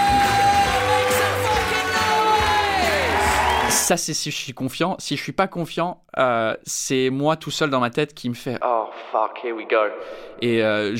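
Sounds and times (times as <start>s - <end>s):
stage entrance music: 0.0s - 3.8s
applause: 0.0s - 3.9s
speech: 3.9s - 10.9s.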